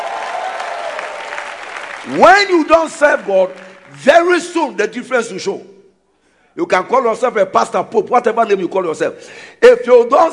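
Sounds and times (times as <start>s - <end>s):
audience clapping for the Lord: 0.0s - 4.5s
speech: 2.0s - 5.7s, 6.6s - 10.3s.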